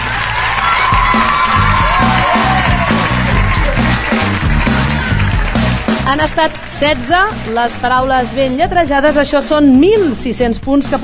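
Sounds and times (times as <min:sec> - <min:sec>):
crowd cheering and whooping: 0:00.0 - 0:06.0
steady applause: 0:00.0 - 0:08.4
speech: 0:06.1 - 0:11.0.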